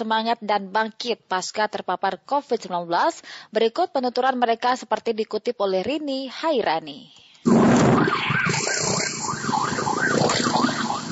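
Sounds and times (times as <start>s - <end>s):
speech: 0.0s - 8.6s
ambulance siren: 7.5s - 11.1s.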